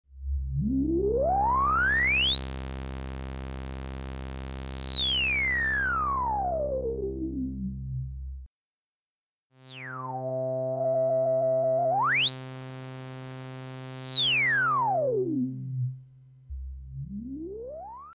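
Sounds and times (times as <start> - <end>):
Minimoog synthesizer filter: 0.2 - 7.6, 9.6 - 18.1.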